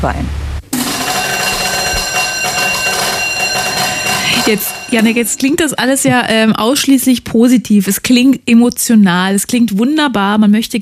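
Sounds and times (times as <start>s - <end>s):
speech: 0.0s - 0.4s, 4.5s - 10.8s
1960s school bell ringing: 0.8s - 6.4s.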